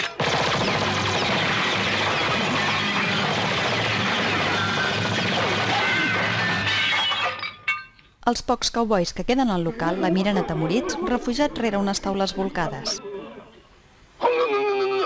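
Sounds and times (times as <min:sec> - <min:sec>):
machine gun fire: 0:00.0 - 0:06.5
glass bottles shattering: 0:06.4 - 0:08.1
speech: 0:08.3 - 0:13.1.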